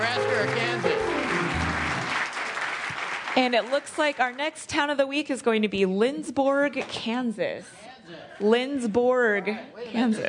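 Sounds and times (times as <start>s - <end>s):
audience applause: 0.0s - 4.4s
speech: 3.4s - 10.2s.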